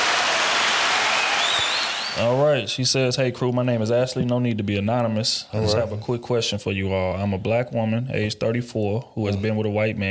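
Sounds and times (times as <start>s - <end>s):
hand clapping applause: 0.0s - 2.4s
speech: 2.2s - 10.0s.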